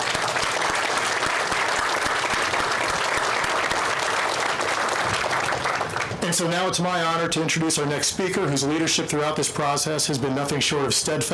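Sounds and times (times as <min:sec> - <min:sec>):
audience applauding: 0:00.0 - 0:06.4
speech: 0:06.4 - 0:11.3.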